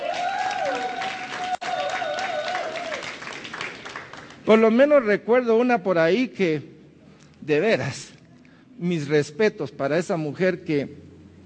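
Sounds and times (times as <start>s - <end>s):
audience applause: 0.0s - 4.5s
speech: 4.5s - 6.7s, 7.4s - 8.1s, 8.8s - 11.1s.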